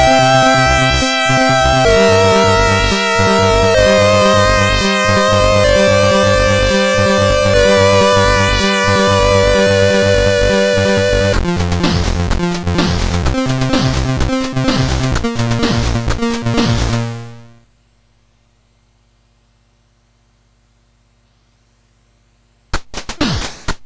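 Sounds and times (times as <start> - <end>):
MOS6581R3 chiptune remix: 0.0 - 17.6.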